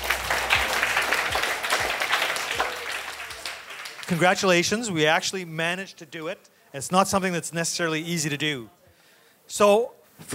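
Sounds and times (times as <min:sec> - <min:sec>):
audience applause: 0:00.0 - 0:04.6
speech: 0:04.1 - 0:08.8, 0:09.5 - 0:10.3.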